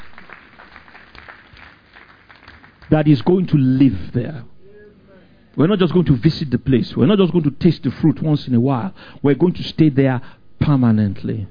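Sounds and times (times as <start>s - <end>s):
church congregation clapping: 0.0s - 3.3s
speech: 2.9s - 4.5s, 5.6s - 11.5s.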